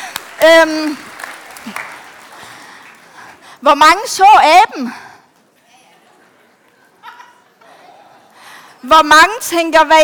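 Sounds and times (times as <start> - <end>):
small crowd clapping: 0.0 - 3.4
speech: 0.4 - 1.8, 3.6 - 5.0, 8.8 - 10.0
laughter: 5.7 - 8.4.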